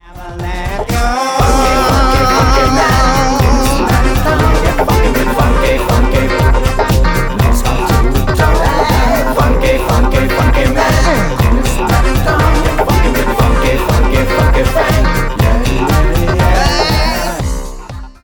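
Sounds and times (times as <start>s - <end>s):
funk music: 0.0s - 18.2s.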